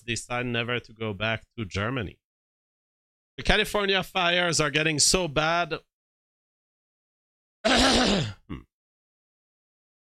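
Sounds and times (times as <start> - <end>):
speech: 0.1 - 2.2, 3.4 - 5.9, 7.6 - 8.7
cough into microphone: 7.6 - 8.8.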